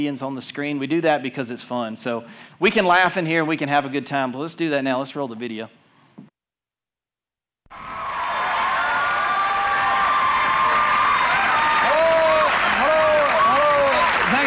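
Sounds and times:
speech: 0:00.0 - 0:05.8
audience applause and cheering: 0:07.7 - 0:14.4.

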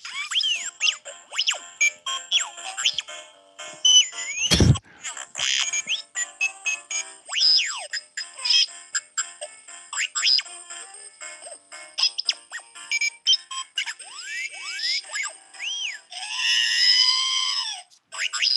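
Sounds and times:
musical greeting card playing tinny tune of robot beeps and whistles: 0:00.0 - 0:18.5.

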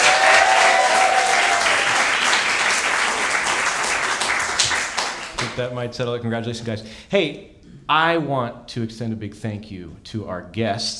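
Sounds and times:
audience applause: 0:00.0 - 0:05.6
speech: 0:05.6 - 0:10.9.

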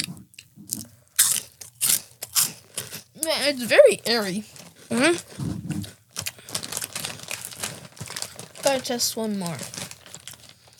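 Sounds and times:
crunching a spicy corn chip snack: 0:00.8 - 0:03.1, 0:06.2 - 0:10.7
speech: 0:03.2 - 0:05.6, 0:08.7 - 0:09.8.

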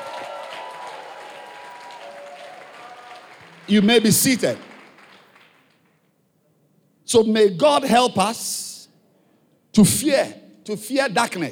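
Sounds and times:
audience clapping hands: 0:00.0 - 0:06.1
speech: 0:03.7 - 0:04.7, 0:07.1 - 0:08.6, 0:09.8 - 0:11.5.

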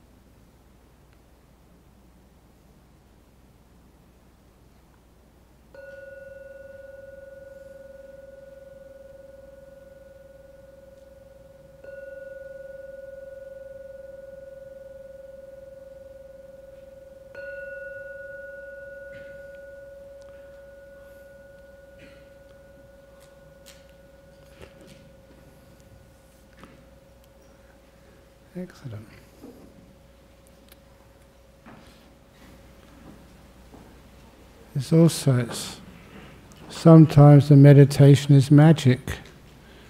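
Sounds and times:
gong ringing: 0:05.7 - 0:28.9
speech: 0:28.6 - 0:29.3, 0:34.8 - 0:35.8, 0:36.8 - 0:39.2.

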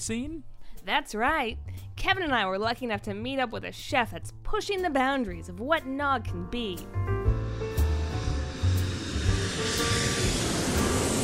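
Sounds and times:
speech: 0:00.0 - 0:07.2
airplane engine noise near George Bush Intercontinental Airport: 0:07.2 - 0:11.2.

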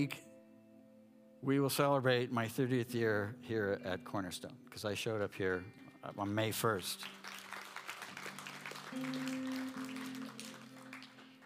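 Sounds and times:
speech: 0:00.0 - 0:00.3, 0:01.4 - 0:07.3, 0:08.9 - 0:09.8
audience applause: 0:07.0 - 0:11.4.

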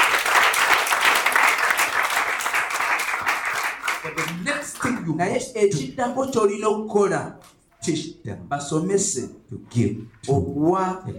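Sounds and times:
audience clapping: 0:00.0 - 0:05.2
speech: 0:05.1 - 0:11.1.

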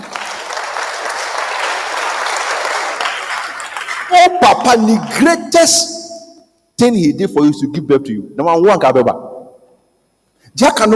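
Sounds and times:
hands clapping: 0:00.0 - 0:04.4
speech: 0:04.1 - 0:06.0, 0:06.8 - 0:09.3, 0:10.6 - 0:10.9.

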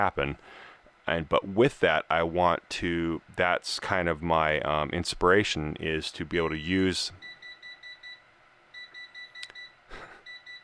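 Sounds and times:
speech: 0:00.0 - 0:07.3
kitchen timer beeping: 0:07.2 - 0:08.2, 0:08.8 - 0:10.6.

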